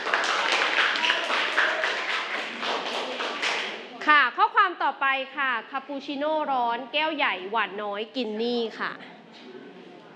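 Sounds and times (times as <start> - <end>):
audience clapping: 0.0 - 3.9
speech: 5.1 - 9.1.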